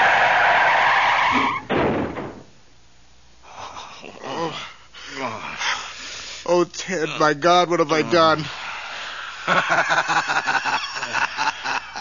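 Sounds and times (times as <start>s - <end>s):
car tyre screech while skidding out of control: 0.0s - 1.7s
speech: 6.6s - 8.6s, 9.5s - 10.6s
laughter: 8.2s - 11.9s.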